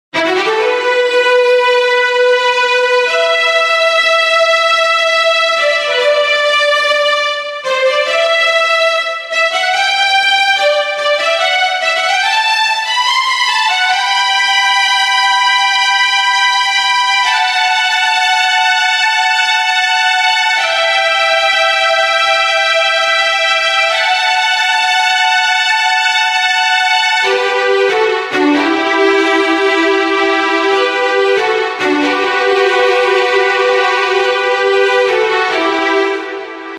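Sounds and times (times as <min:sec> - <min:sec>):
strings: 0:00.1 - 0:36.7.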